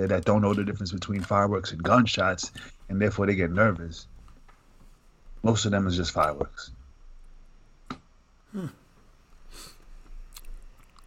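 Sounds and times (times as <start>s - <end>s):
speech: 0.0s - 4.1s, 5.4s - 6.8s, 8.5s - 8.8s
chewing ice: 10.3s - 11.0s.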